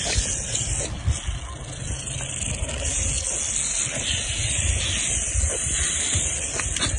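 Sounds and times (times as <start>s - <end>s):
rattlesnake rattling: 0.0s - 6.9s.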